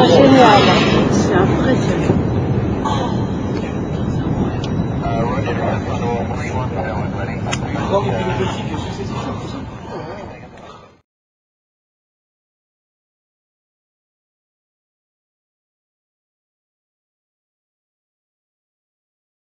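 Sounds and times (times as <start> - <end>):
Concorde jet airliner taking off: 0.0 - 10.5.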